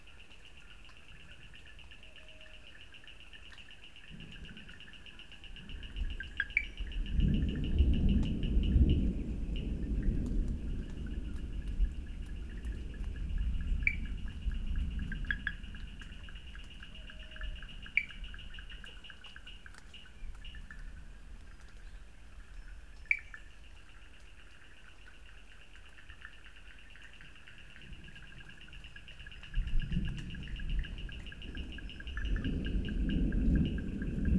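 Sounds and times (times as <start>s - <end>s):
Wood Frogs in Sri Lanka: 0.0s - 34.3s
thunder in Sri Lanka: 5.5s - 18.9s, 29.3s - 34.3s.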